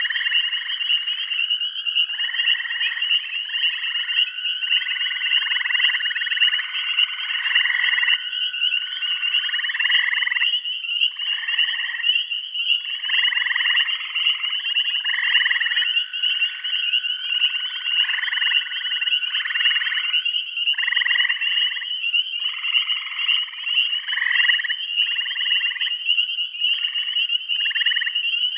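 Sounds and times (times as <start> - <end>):
frog chorus of overlapping pulsed buzzy trills in Bath County: 0.0 - 28.5.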